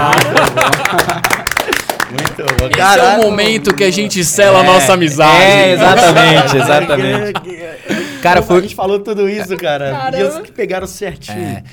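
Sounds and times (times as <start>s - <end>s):
laughter: 0.0s - 2.8s, 5.3s - 8.6s
audience clapping: 0.0s - 4.4s
speech: 2.6s - 11.7s.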